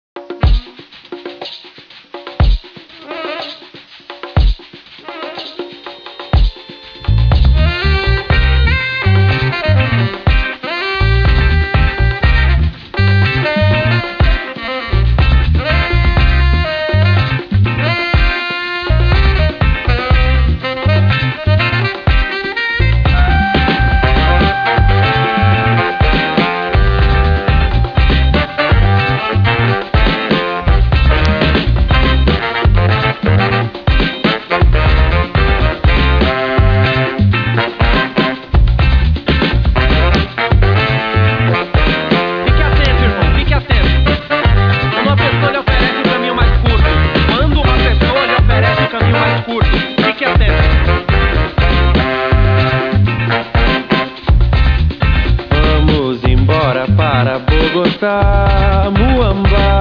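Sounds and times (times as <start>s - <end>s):
music: 0.2s - 59.7s.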